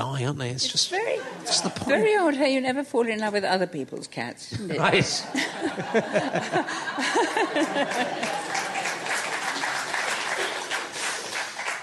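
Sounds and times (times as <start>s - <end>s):
speech: 0.0s - 8.5s
laughter: 4.8s - 10.7s
audience applause: 6.3s - 11.8s.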